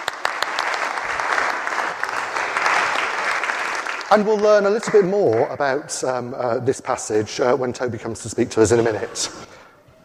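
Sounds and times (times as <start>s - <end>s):
audience applause: 0.0s - 5.6s
speech: 4.1s - 9.6s.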